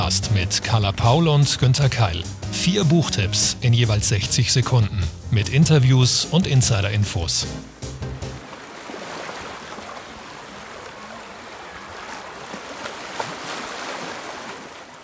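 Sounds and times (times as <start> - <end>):
speech: 0.1 - 7.8
ocean waves and surf: 6.9 - 15.0.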